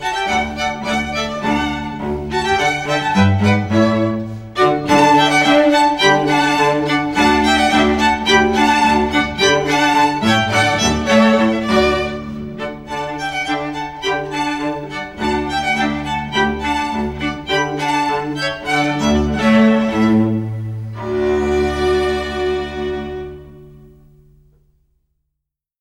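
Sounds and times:
classical trio playing: 0.0s - 24.7s.

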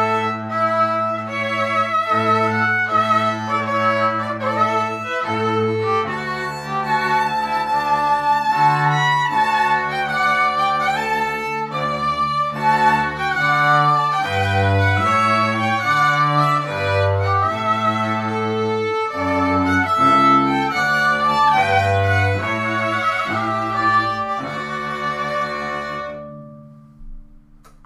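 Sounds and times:
two violins and cello playing: 0.0s - 27.2s.

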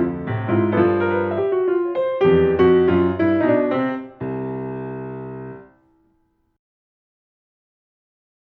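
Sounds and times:
solo jazz piano: 0.0s - 5.9s.

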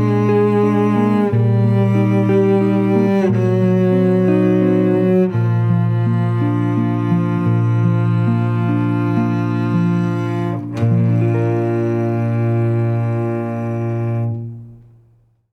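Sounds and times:
string duo playing classical music: 0.0s - 14.9s.

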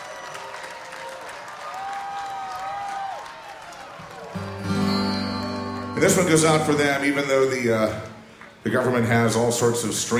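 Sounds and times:
audience applause: 0.0s - 7.4s
speech: 6.0s - 10.1s.

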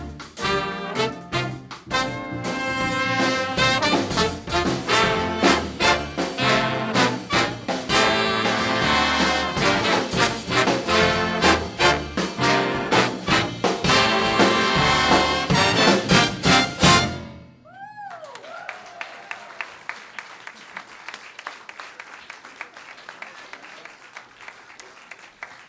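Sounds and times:
big band: 0.0s - 17.7s.

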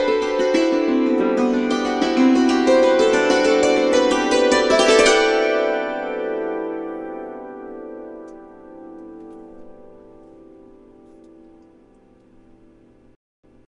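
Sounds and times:
hammered dulcimer: 0.0s - 10.0s.

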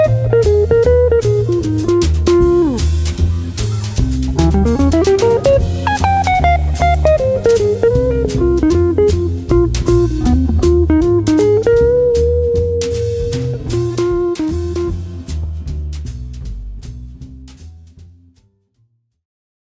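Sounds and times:
jazz quartet playing: 0.0s - 18.0s.

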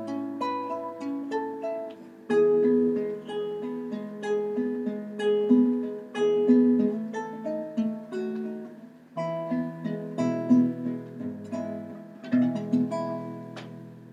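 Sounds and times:
romance on classical acoustic guitar: 0.0s - 14.1s.

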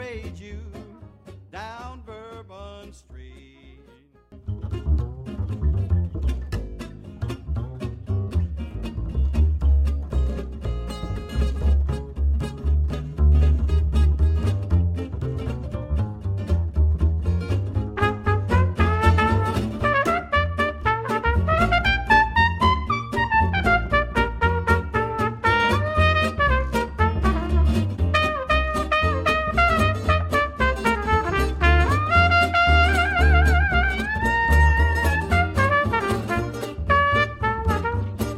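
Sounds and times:
banjo: 0.0s - 38.3s
upright bass: 0.0s - 38.3s
trumpet: 17.8s - 38.3s.

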